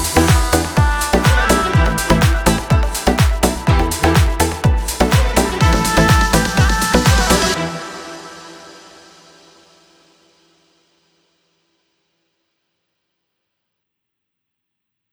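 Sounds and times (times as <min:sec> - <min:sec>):
arabesk oryantal music: 0:00.0 - 0:09.5.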